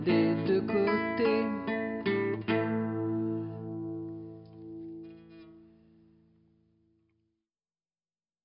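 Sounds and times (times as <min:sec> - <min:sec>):
blues music: 0:00.0 - 0:06.3.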